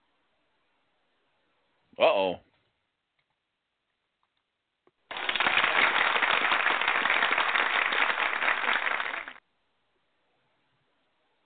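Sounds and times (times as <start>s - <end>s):
speech: 2.0s - 2.5s
applause: 5.1s - 9.4s.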